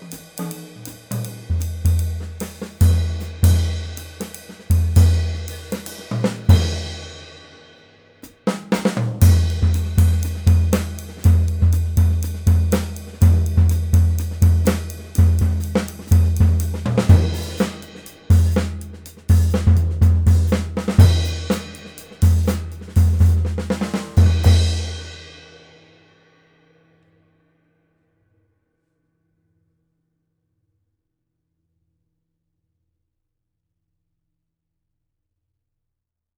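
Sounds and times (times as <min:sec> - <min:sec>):
Sabian hi-hat cymbal: 0:00.0 - 0:25.9.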